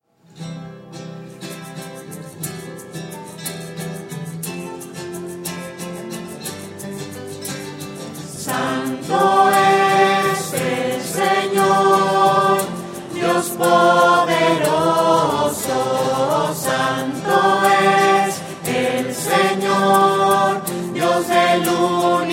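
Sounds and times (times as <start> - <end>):
voices: 8.4 - 22.3.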